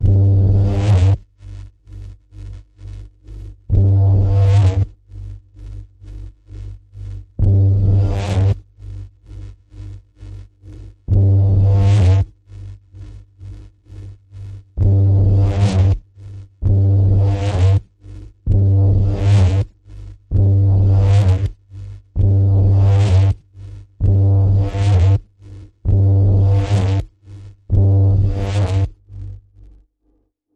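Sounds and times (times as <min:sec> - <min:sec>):
ominous pulse in the key of G: 0:00.0 - 0:01.2, 0:03.7 - 0:05.0, 0:07.3 - 0:08.6, 0:10.3 - 0:12.3, 0:14.8 - 0:23.4, 0:24.0 - 0:27.1, 0:27.7 - 0:29.4.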